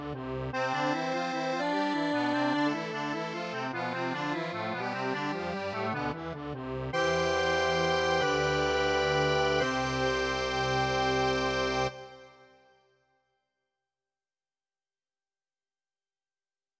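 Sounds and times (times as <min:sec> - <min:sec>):
accordion: 0:00.0 - 0:12.8.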